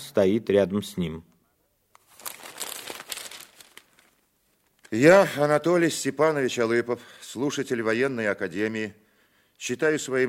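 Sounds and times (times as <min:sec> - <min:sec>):
speech: 0:00.2 - 0:01.3, 0:04.9 - 0:09.0, 0:09.6 - 0:10.2
newspaper pages being handled and folded: 0:02.0 - 0:05.1.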